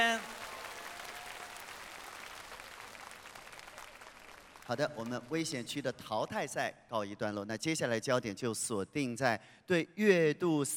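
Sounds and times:
audience applause: 0.0s - 5.1s
speech: 4.7s - 10.7s.

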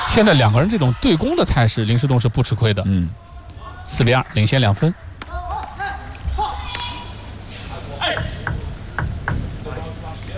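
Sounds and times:
speech: 0.2s - 3.3s, 3.9s - 5.1s
table tennis ball bouncing as Lin Shidong prepares to serve: 8.2s - 9.6s.

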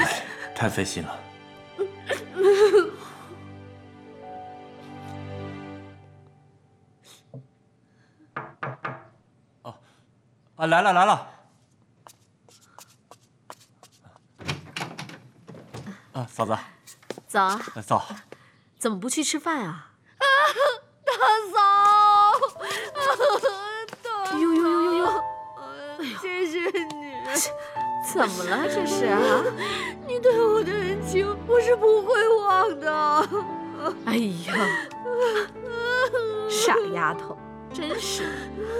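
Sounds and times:
speech: 0.6s - 1.2s, 10.6s - 11.3s, 16.2s - 19.9s, 26.4s - 35.6s, 36.5s - 38.7s
woman crying: 1.8s - 3.4s, 20.2s - 38.7s.

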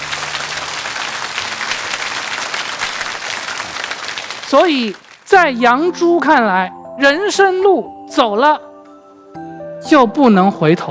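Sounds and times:
audience applause: 0.0s - 5.3s
speech: 4.5s - 8.7s, 9.8s - 10.8s.

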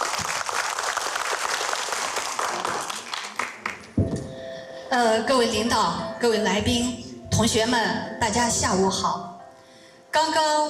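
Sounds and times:
audience applause: 0.0s - 4.0s
speech: 5.0s - 9.3s, 10.2s - 10.6s.

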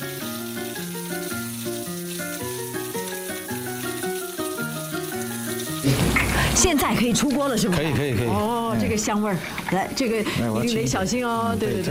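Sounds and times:
whole fish deep-frying in hot oil: 0.0s - 11.9s
speech: 5.8s - 11.9s.

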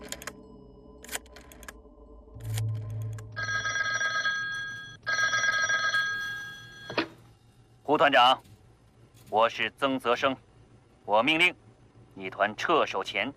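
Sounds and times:
low hum: 0.0s - 13.3s
telephone ringing: 3.2s - 7.2s
speech: 7.9s - 8.5s, 9.3s - 10.5s, 11.1s - 11.6s, 12.2s - 13.3s.

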